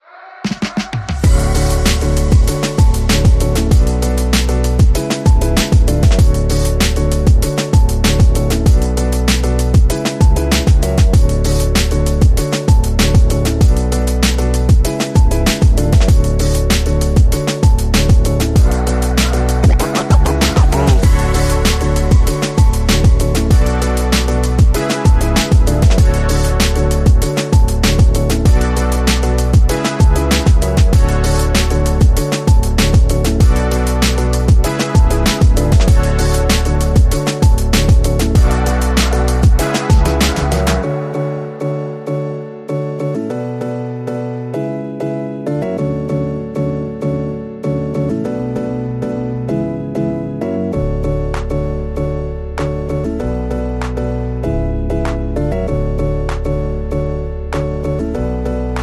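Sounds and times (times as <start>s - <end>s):
music without leads or pads: 0.0s - 58.8s.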